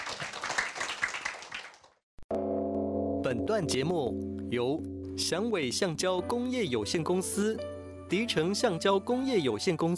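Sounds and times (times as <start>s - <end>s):
audience applause welcoming a speaker: 0.0s - 2.0s
speech: 3.3s - 9.9s.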